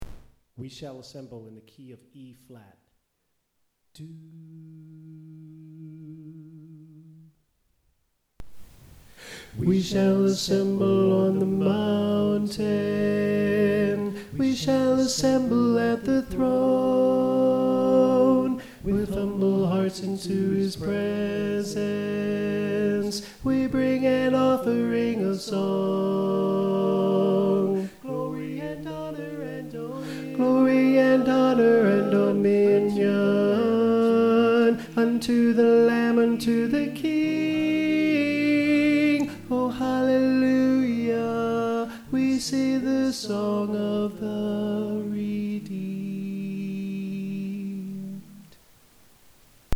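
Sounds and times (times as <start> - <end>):
tenor singing: 9.3 - 48.7.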